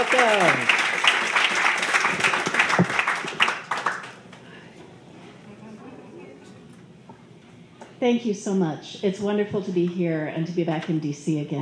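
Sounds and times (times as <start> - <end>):
audience applause for a poet at a reading: 0.0 - 4.6
speech: 0.2 - 0.8, 8.1 - 11.6.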